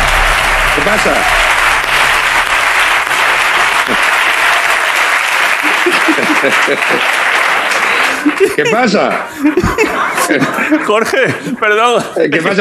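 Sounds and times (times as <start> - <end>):
applause: 0.0 - 10.0
speech: 0.8 - 1.4, 6.1 - 7.2, 8.2 - 12.5
laughter: 5.4 - 12.5.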